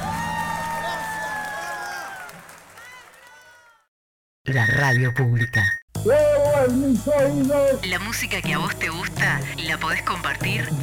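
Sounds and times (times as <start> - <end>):
loud audience applause: 0.0 - 3.9
speech: 4.5 - 10.8.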